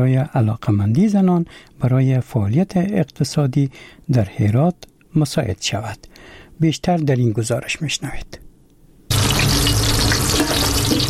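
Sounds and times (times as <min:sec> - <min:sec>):
speech: 0:00.0 - 0:08.5
food frying in a women-only restaurant kitchen in Herat: 0:09.1 - 0:11.0.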